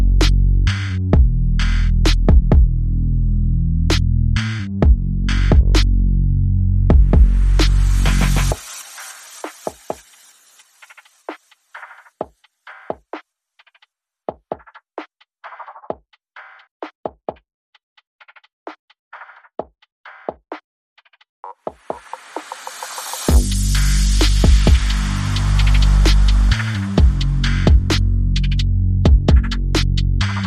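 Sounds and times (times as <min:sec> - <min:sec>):
drums: 0:00.0 - 0:02.7, 0:03.9 - 0:05.9, 0:06.9 - 0:30.4
bass: 0:00.0 - 0:08.6, 0:23.3 - 0:30.4
sound effects: 0:06.8 - 0:11.6, 0:21.8 - 0:28.5.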